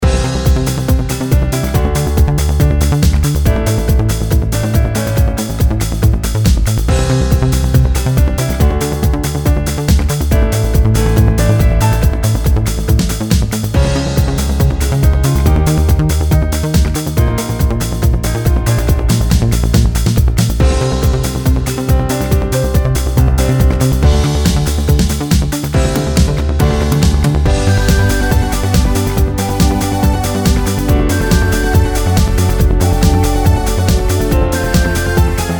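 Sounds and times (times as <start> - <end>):
background music: 0.0 - 35.5.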